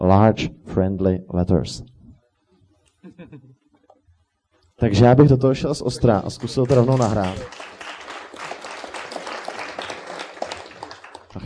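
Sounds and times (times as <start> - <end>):
speech: 0.0 - 1.9, 3.0 - 3.6, 4.8 - 7.7
group clapping: 5.8 - 11.4.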